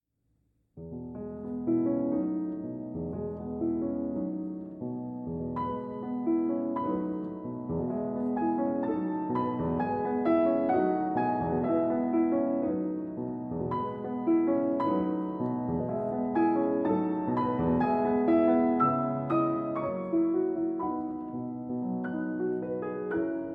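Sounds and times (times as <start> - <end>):
lullaby transcribed for piano: 0.8 - 23.5.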